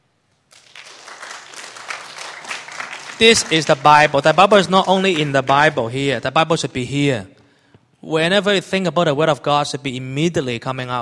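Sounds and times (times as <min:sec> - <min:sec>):
audience clapping: 0:00.4 - 0:06.5
speech: 0:03.2 - 0:07.4, 0:08.0 - 0:11.0.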